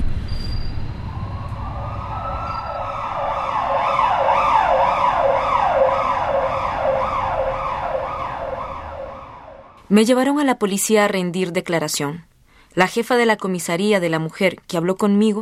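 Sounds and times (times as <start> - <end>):
ambulance siren: 1.0 - 9.8
speech: 9.9 - 15.4.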